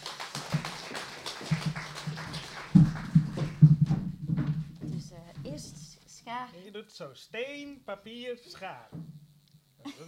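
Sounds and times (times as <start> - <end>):
audience applause: 0.0 - 3.8
speech: 6.3 - 9.1, 9.8 - 10.0.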